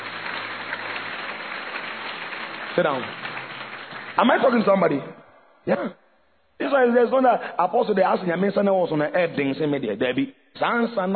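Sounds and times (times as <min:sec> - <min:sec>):
audience clapping: 0:00.0 - 0:05.2
speech: 0:02.8 - 0:03.3, 0:04.2 - 0:06.0, 0:06.6 - 0:11.1.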